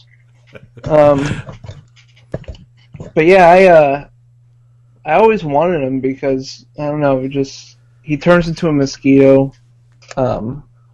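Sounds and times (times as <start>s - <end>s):
speech: 0.5s - 1.6s, 3.2s - 4.1s, 5.0s - 10.7s
person gagging: 0.8s - 1.5s.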